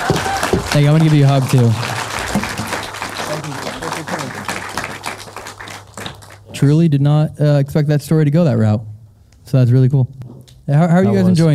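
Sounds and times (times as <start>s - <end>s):
audience round of applause: 0.0s - 6.6s
speech: 0.8s - 1.9s, 6.6s - 8.9s, 9.5s - 11.5s.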